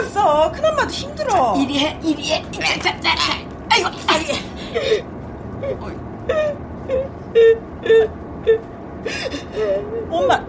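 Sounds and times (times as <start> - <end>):
speech: 0.5 - 10.4
woman crying in sobs and whimpering moans: 3.2 - 10.4.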